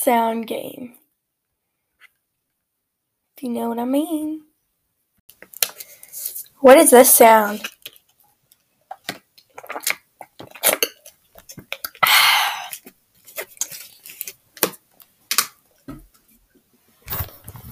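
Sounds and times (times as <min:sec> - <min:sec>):
speech: 0:00.0 - 0:01.0, 0:03.4 - 0:04.5, 0:06.6 - 0:07.8
person drinking water: 0:08.9 - 0:13.0.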